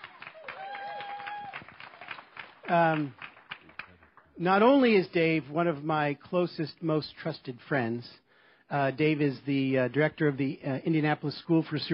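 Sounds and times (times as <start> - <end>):
audience applause: 0.0 - 4.3
speech: 2.7 - 3.2, 4.4 - 11.9.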